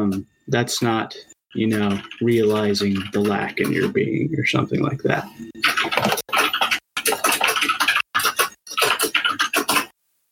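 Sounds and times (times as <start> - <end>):
speech: 0.0 - 5.6
keyboard typing: 0.8 - 4.2, 5.3 - 10.0.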